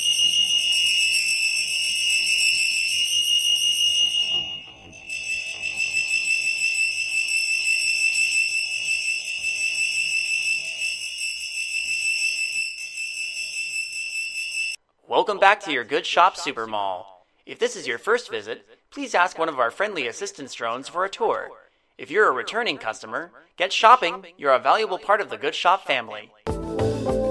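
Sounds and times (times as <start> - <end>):
disaster alert system test alarm: 0.0 - 14.8
speech: 15.2 - 26.4.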